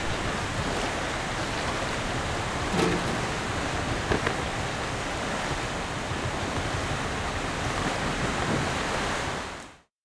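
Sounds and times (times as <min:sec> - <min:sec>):
ship at sea exterior ambience: 0:00.0 - 0:09.9.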